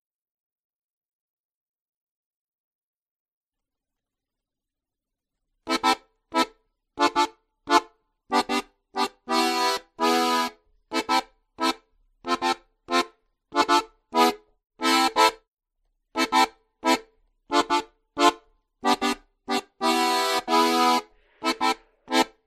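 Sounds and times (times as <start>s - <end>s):
diatonic accordion ballet music: 5.6s - 15.5s, 16.1s - 22.4s.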